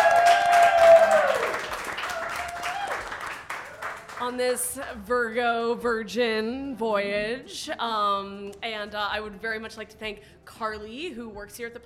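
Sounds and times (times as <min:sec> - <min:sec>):
studio audience applauding: 0:00.0 - 0:04.3
speech: 0:04.3 - 0:11.8.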